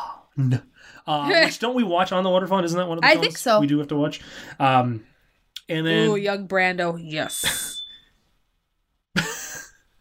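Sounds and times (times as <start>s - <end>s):
speech: 0.4s - 5.1s, 5.7s - 7.7s
smoke alarm beep: 7.2s - 8.2s.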